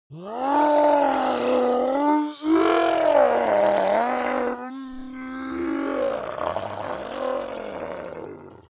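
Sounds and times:
human changing into zombie: 0.1 - 8.7.

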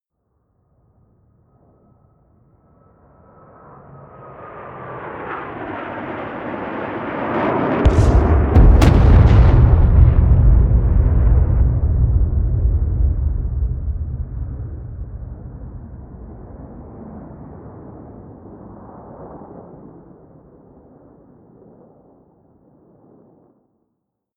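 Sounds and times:
air strike: 7.9 - 17.2.

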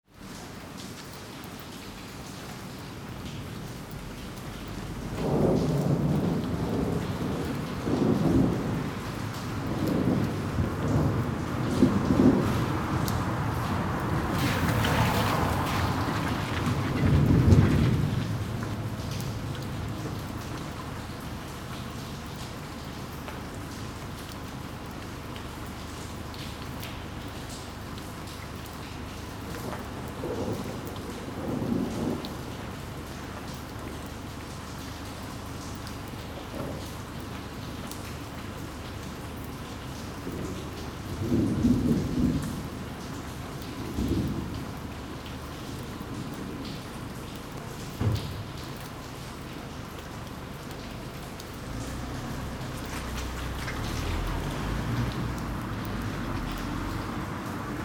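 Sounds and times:
rain during a taxi ride: 0.0 - 57.8
taxi driving: 12.7 - 19.0, 51.4 - 57.8.

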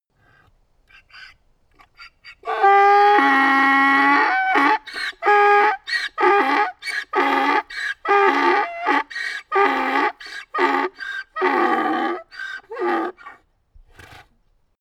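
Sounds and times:
donkey braying: 0.9 - 13.4.

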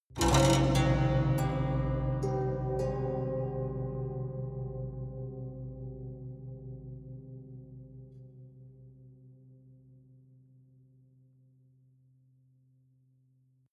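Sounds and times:
dark haunted strings sequence: 0.2 - 9.0.

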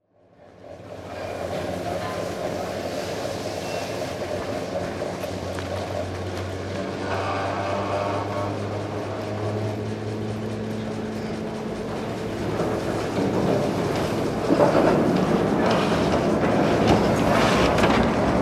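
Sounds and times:
cable car at top station: 0.0 - 18.4.

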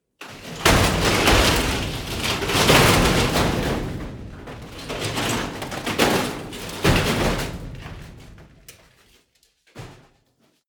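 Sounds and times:
medium metal crash: 0.5 - 8.3.

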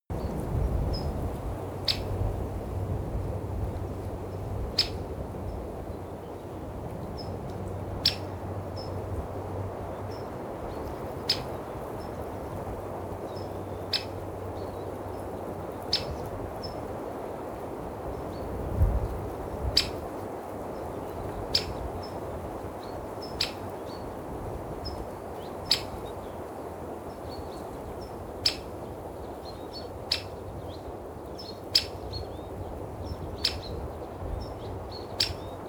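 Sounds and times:
wind: 0.0 - 35.6
birds twittering: 0.2 - 2.2, 4.3 - 9.0, 9.9 - 16.8, 19.7 - 35.6.

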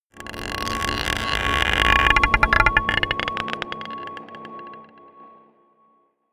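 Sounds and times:
scraping a marble pot: 0.2 - 4.8
dark drones: 0.4 - 5.6.

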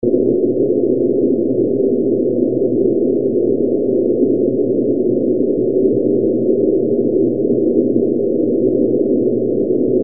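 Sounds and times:
noise: 0.0 - 10.0.

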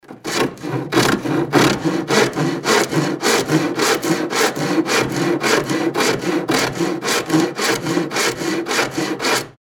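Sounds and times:
sawing wood: 0.0 - 9.5.

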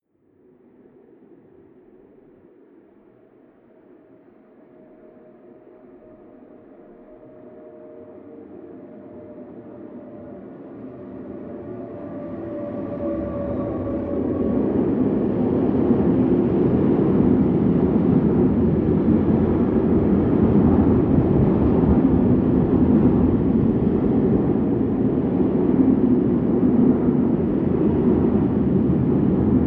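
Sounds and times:
distant freight train driving by: 6.4 - 29.5.

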